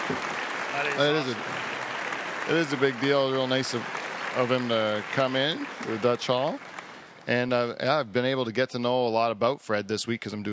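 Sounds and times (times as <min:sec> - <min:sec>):
crowd applauding: 0:00.0 - 0:07.6
speech: 0:00.1 - 0:01.7, 0:02.4 - 0:10.5.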